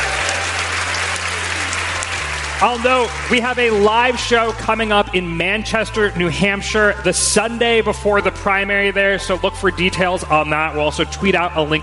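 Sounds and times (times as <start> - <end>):
audience applause at a live show: 0.0 - 4.9
speech: 2.6 - 11.8.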